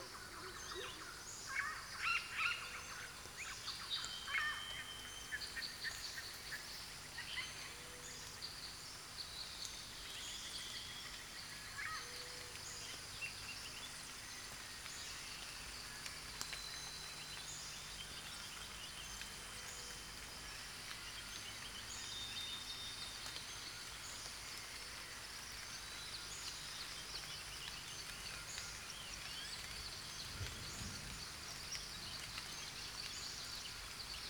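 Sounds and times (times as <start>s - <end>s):
rainforest ambience: 0.0s - 34.2s.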